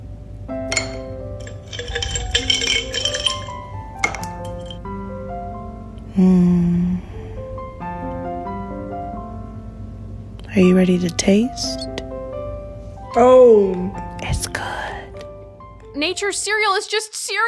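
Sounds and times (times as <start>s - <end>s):
ice cubes clinking in a cereal bowl: 0.7s - 4.8s
speech: 6.2s - 6.7s, 10.6s - 11.9s, 13.2s - 14.6s, 16.0s - 17.4s.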